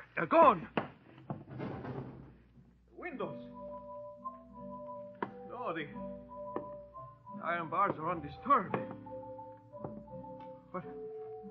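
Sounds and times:
speech: 0.2s - 0.8s, 3.2s - 3.7s, 5.6s - 6.4s, 7.4s - 9.2s, 10.7s - 11.2s
door forced open with splintering: 1.3s - 2.4s.

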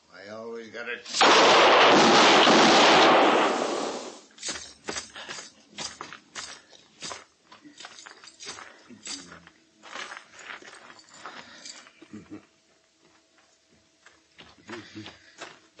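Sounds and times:
speech: 0.7s - 2.4s
gunshots in a radio drama western shootout: 1.1s - 4.3s.

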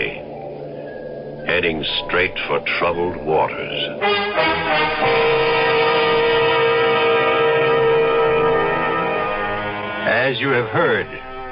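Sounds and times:
speech: 1.5s - 5.6s, 10.3s - 11.3s
ship's whistle: 4.0s - 11.5s.

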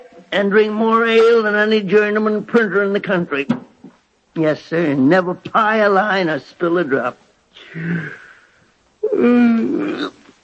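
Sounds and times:
speech: 0.3s - 3.7s, 4.4s - 8.2s, 9.2s - 10.1s
person yawning: 7.6s - 10.3s.

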